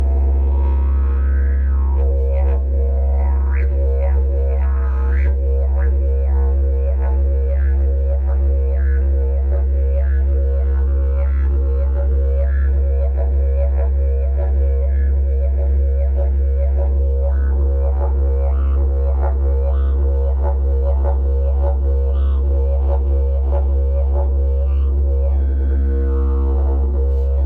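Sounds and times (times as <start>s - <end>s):
didgeridoo: 0.0s - 27.4s.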